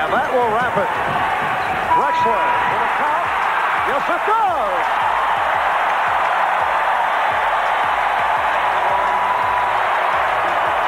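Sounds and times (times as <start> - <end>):
speech: 0.0 - 1.5, 2.2 - 3.1, 3.9 - 5.1
basketball crowd roaring and cheering at game's end: 0.0 - 10.8.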